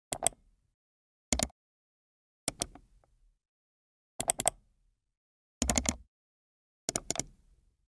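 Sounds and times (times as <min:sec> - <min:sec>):
mouse clicks: 0:00.1 - 0:00.4, 0:02.5 - 0:02.9, 0:04.2 - 0:04.6, 0:06.9 - 0:07.4.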